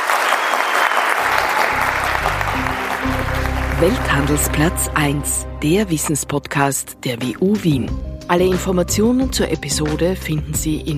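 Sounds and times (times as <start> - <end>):
audience applause: 0.0 - 5.0
speech: 3.8 - 10.9.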